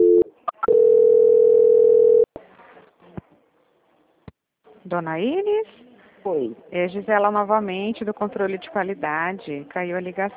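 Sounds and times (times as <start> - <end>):
steady single-pitch telephone line tone: 0.0 - 2.3
speech: 4.9 - 10.3.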